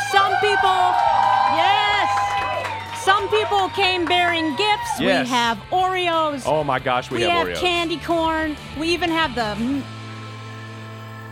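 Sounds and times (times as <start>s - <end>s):
live audience cheering and whooping: 0.0s - 5.5s
speech: 3.3s - 10.0s.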